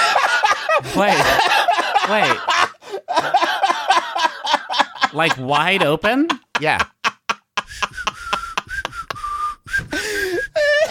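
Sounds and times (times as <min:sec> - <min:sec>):
laughter: 0:00.0 - 0:09.2
speech: 0:01.0 - 0:02.5, 0:05.2 - 0:06.9
person whistling with mouth open: 0:07.7 - 0:10.8.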